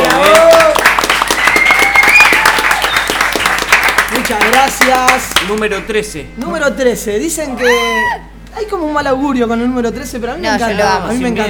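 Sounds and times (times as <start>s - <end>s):
audience applause: 0.0s - 5.6s
speech: 4.6s - 11.4s.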